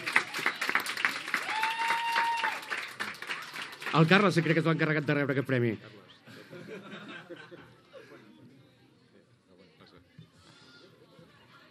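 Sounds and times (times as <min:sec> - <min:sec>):
audience applause: 0:00.0 - 0:04.8
speech: 0:03.9 - 0:06.1
laughter: 0:06.2 - 0:08.4.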